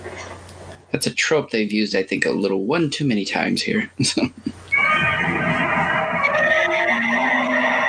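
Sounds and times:
speech: 0.9 - 4.6
giant monster howling: 4.7 - 7.8.

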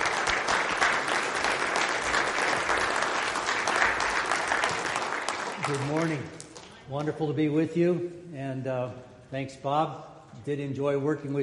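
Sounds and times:
audience applause: 0.0 - 6.7
speech: 5.7 - 11.4.

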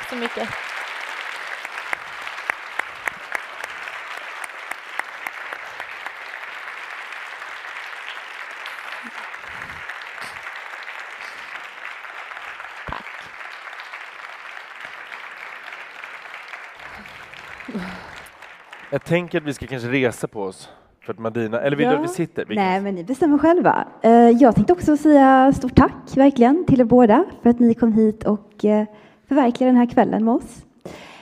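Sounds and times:
audience applause: 0.0 - 20.6
speech: 0.1 - 0.7, 19.0 - 31.0.

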